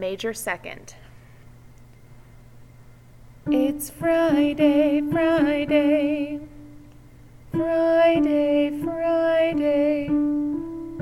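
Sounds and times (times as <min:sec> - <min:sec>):
interval reference song examples: 0:03.4 - 0:06.9, 0:07.5 - 0:11.0.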